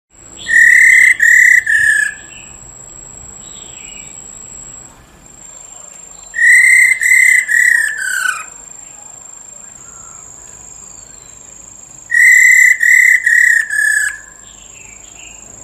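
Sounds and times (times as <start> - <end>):
Black-throated laughingthrush whistling: 0.4 - 2.6, 6.2 - 8.6, 9.7 - 15.0.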